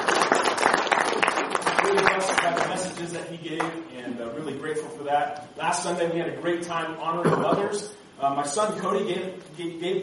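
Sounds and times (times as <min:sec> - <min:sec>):
audience applause: 0:00.0 - 0:03.0
speech: 0:03.5 - 0:10.0.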